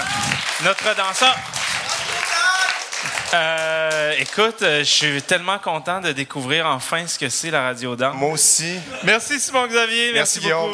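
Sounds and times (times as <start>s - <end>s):
audience applause: 0.0s - 5.2s
speech: 0.6s - 1.5s, 3.3s - 10.7s.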